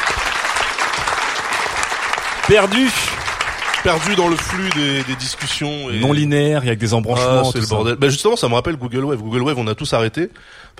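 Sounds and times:
live audience applause: 0.0 - 6.1
speech: 2.5 - 3.2, 3.8 - 10.7.

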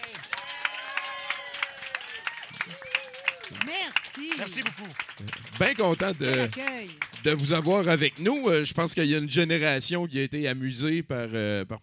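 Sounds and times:
audience applause: 0.0 - 8.7
speech: 3.5 - 11.8.

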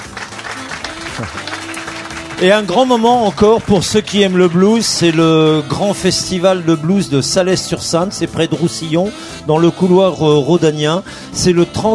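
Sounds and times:
audience applause: 0.0 - 5.8
speech: 1.2 - 1.5, 2.4 - 11.9.

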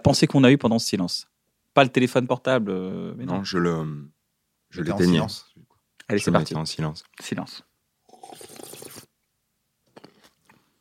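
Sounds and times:
speech: 0.0 - 7.7
crunchy chewing-like mouth crackle: 8.1 - 9.1, 9.9 - 10.7.

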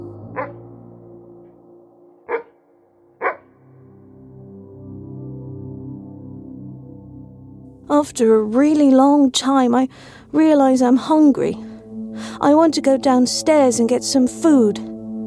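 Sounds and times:
dog barking: 2.3 - 2.6, 3.2 - 3.4
speech: 7.9 - 14.9.

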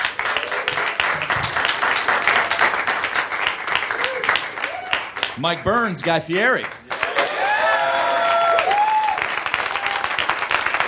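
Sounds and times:
audience applause: 0.0 - 10.8
faint voices and whoops: 3.9 - 5.1, 7.0 - 10.3
speech: 5.4 - 6.8.

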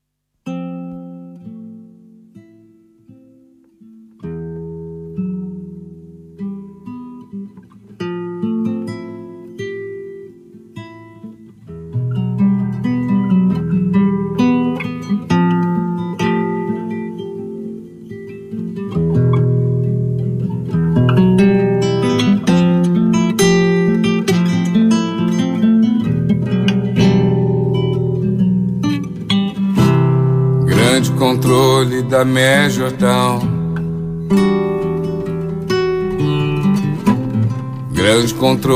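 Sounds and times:
live acoustic guitar: 0.0 - 38.7
person singing a cover in Portuguese: 30.6 - 33.9, 36.0 - 38.7
speech: 32.1 - 33.5, 38.1 - 38.7.

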